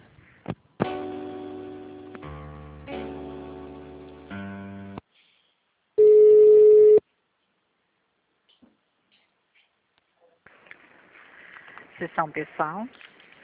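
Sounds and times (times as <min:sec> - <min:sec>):
steady pure beep: 0:06.0 - 0:07.0
telephone line tones during a call transfer: 0:06.0 - 0:07.0
speech: 0:12.2 - 0:13.1.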